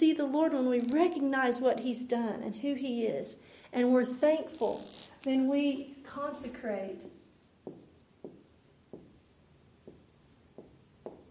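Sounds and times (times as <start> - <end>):
speech: 0.0 - 7.2
pen or marker writing during a sermon: 7.0 - 11.2.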